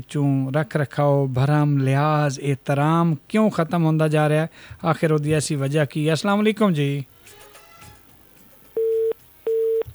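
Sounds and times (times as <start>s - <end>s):
speech: 0.0s - 7.2s
telephone busy tone after a cut-off call: 8.8s - 9.9s.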